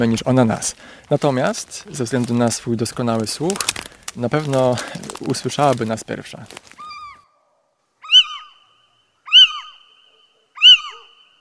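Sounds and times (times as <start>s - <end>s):
speech: 0.0s - 6.7s
little owl giving mewing cat-like calls: 6.8s - 7.4s, 8.0s - 11.3s.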